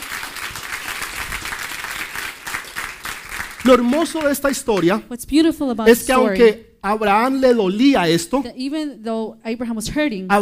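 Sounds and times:
applause: 0.0s - 5.0s
speech: 3.6s - 10.4s.

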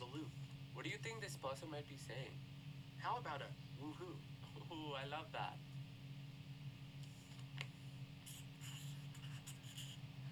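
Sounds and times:
speech: 0.0s - 5.7s
low steady hum: 0.0s - 10.2s
pen scratching on paper while drawing a guitar: 8.2s - 10.0s.

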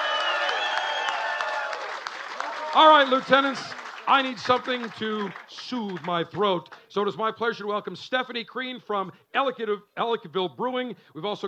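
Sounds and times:
banquet audience applause for the Buffalo Launch Club: 0.0s - 6.8s
speech: 2.8s - 11.4s.

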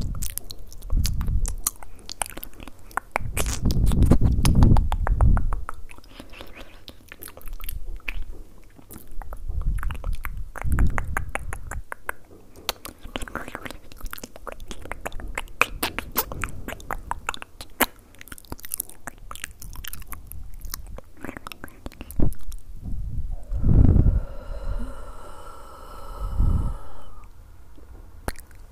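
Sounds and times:
wet mouth clicks and smacks: 0.0s - 28.7s
breathy tonal sound: 23.4s - 28.2s.

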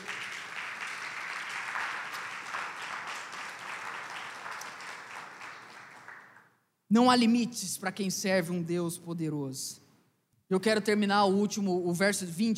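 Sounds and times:
audience applause: 0.0s - 6.5s
speech: 6.9s - 9.8s, 10.5s - 12.5s.

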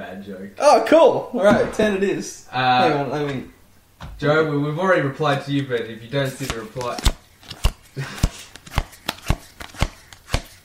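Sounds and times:
speech: 0.1s - 7.2s, 8.0s - 8.3s
business cards being handled, tapping and flicking: 6.3s - 10.6s.

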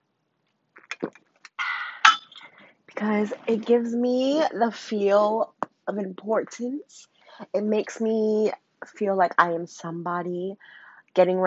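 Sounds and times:
speech: 1.0s - 1.2s, 3.0s - 11.4s
metal straw clinking against a can: 2.0s - 2.4s.

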